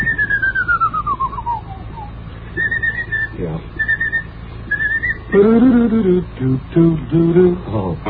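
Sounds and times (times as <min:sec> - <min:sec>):
person whistling a tricky passage of a march: 0:00.0 - 0:05.4
speech: 0:05.4 - 0:08.0.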